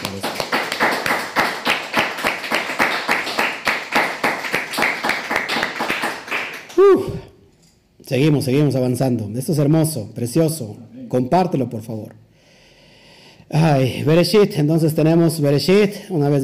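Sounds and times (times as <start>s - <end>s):
crowd clapping in rhythm: 0.0s - 7.0s
speech: 8.1s - 12.2s, 13.5s - 16.4s.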